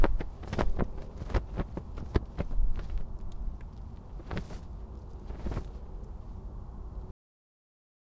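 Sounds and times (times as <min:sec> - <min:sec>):
sails flapping: 0:00.0 - 0:07.1.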